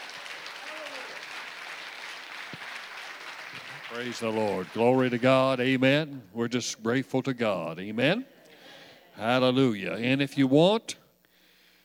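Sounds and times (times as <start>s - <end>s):
audience clapping: 0.0s - 5.8s
speech: 3.9s - 8.3s, 9.2s - 11.0s.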